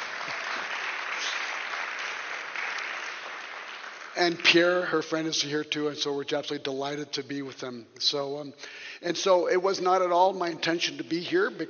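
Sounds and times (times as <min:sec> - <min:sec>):
crowd applause: 0:00.0 - 0:04.9
speech: 0:04.2 - 0:11.6.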